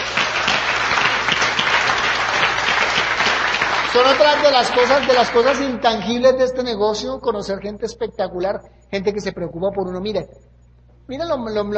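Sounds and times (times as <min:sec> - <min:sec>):
audience applause: 0:00.0 - 0:06.1
speech: 0:04.0 - 0:11.7.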